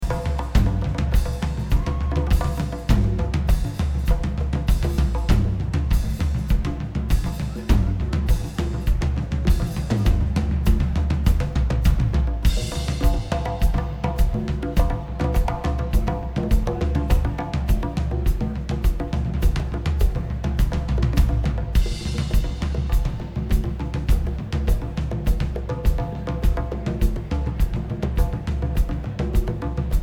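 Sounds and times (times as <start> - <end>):
drums: 0.0 - 30.0.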